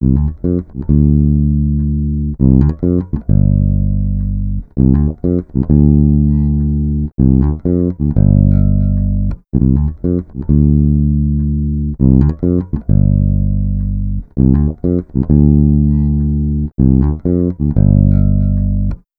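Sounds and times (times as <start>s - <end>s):
electro lounge bass: 0.0s - 19.0s.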